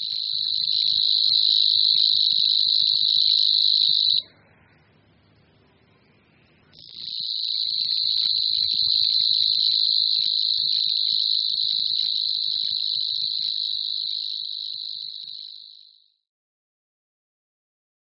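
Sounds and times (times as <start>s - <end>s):
Savi's warbler reeling song: 0.0s - 4.2s, 6.8s - 16.0s.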